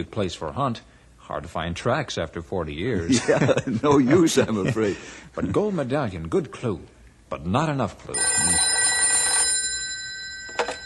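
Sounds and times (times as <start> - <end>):
speech: 0.0 - 8.7
telephone ringing: 8.1 - 10.8.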